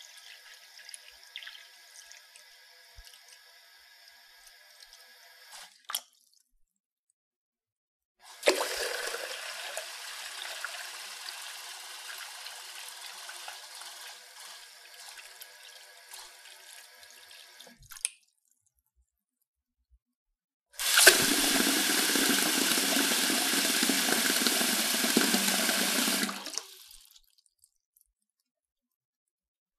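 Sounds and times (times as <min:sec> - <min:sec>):
faucet water into sink: 0:00.0 - 0:06.4, 0:08.2 - 0:18.1, 0:20.8 - 0:27.8.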